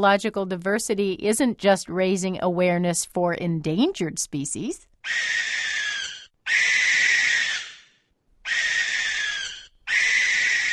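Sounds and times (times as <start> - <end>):
speech: 0.0 - 5.6
common barn owl screeching: 5.0 - 10.7.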